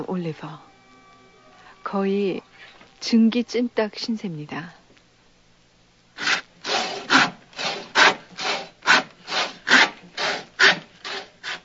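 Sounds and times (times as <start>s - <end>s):
speech: 0.1s - 0.7s, 1.8s - 4.8s
hand saw cutting through heels of women's high-heeled shoes: 6.2s - 11.6s.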